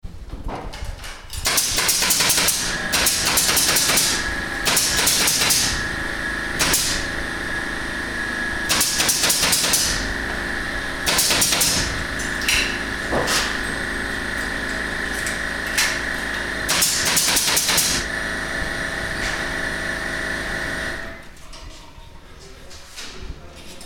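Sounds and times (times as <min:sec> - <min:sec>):
construction site noise: 0:00.1 - 0:23.8.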